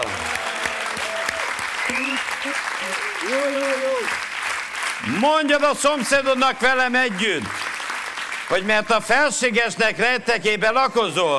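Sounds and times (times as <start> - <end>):
cheering voices and whoops: 0.0 - 4.2
large crowd applause: 0.0 - 9.0
speech: 2.4 - 4.3, 5.0 - 7.6, 8.5 - 11.3.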